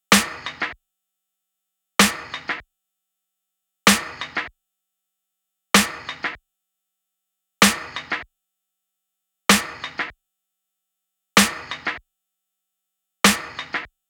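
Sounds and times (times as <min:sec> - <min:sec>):
snare drum: 0:00.1 - 0:00.8, 0:02.0 - 0:02.6, 0:03.9 - 0:04.5, 0:05.8 - 0:06.4, 0:07.6 - 0:08.3, 0:09.5 - 0:10.2, 0:11.4 - 0:12.0, 0:13.2 - 0:13.9.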